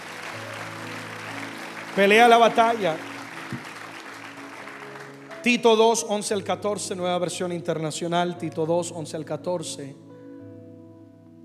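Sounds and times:
audience applause: 0.0s - 5.4s
speech: 2.0s - 3.7s, 5.4s - 10.0s.

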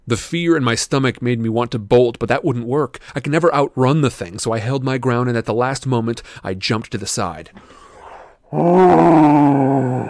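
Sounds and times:
speech: 0.1s - 7.9s, 8.5s - 10.0s
bull monster bellowing: 8.5s - 10.0s.

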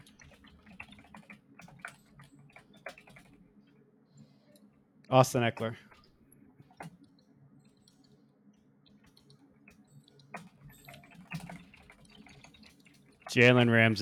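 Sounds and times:
typing on a computer keyboard: 0.0s - 3.4s, 9.0s - 13.4s
speech: 5.1s - 5.8s, 13.4s - 13.9s.

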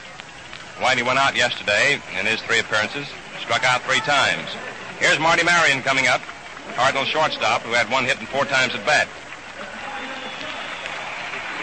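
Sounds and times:
murmur of voices in a baseball stadium crowd: 0.0s - 11.6s
speech: 0.8s - 9.2s
baseball stadium crowd applause: 0.8s - 11.6s.

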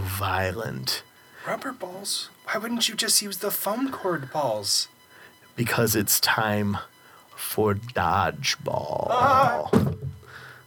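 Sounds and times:
speech: 0.2s - 5.0s, 5.6s - 10.0s
microphone knocked over: 9.6s - 10.2s.

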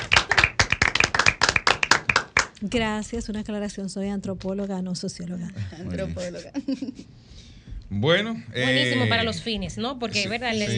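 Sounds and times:
applause for a guest: 0.0s - 2.6s
speech: 2.6s - 7.2s, 7.9s - 10.7s
laughter: 5.6s - 7.1s.

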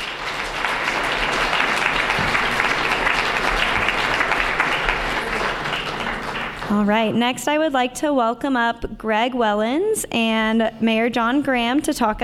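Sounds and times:
audience applause: 0.0s - 6.9s
speech: 6.7s - 12.2s.

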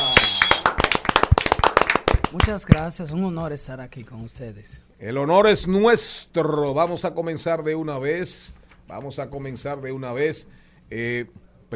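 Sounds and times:
audience applause: 0.0s - 2.4s
speech: 2.3s - 11.7s.

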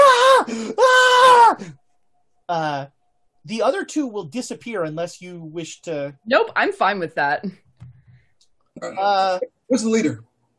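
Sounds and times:
video game character screaming in pain after being sliced: 0.0s - 1.7s
speech: 2.5s - 7.6s, 8.8s - 10.3s
low groan: 8.8s - 10.2s.

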